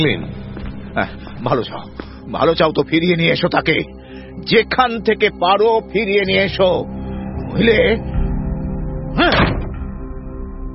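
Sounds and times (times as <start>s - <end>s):
speech: 0.0s - 0.4s, 1.0s - 8.1s, 9.2s - 9.5s
steady low musical drone: 0.0s - 10.7s
bedroom door slamming shut: 9.2s - 9.9s.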